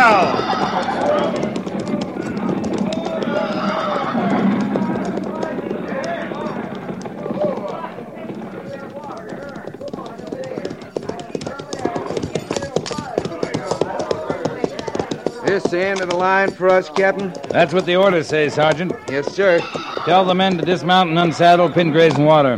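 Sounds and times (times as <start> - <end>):
horse whinnying: 0.0 - 5.2, 18.6 - 21.8
laughter: 0.0 - 6.6
several horses' hooves clopping: 0.0 - 22.5
speech: 15.7 - 22.5.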